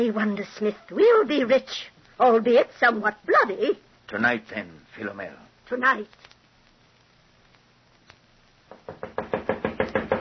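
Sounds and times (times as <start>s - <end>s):
speech: 0.0s - 6.3s
sharp knocks on a door: 8.7s - 10.2s.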